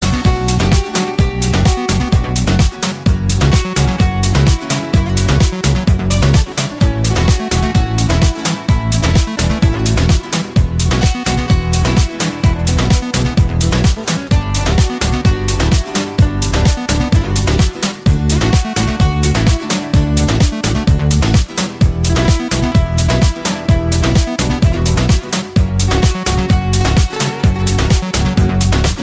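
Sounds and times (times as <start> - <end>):
cool latino mix ringtone: 0.0 - 29.0.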